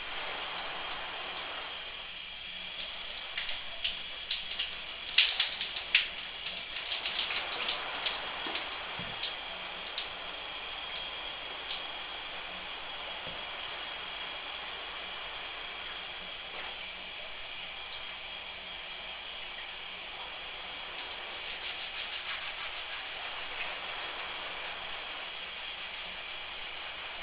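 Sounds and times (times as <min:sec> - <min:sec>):
shower running behind curtain: 0:00.0 - 0:27.2
water taps and splashes: 0:02.7 - 0:12.0, 0:21.0 - 0:23.9.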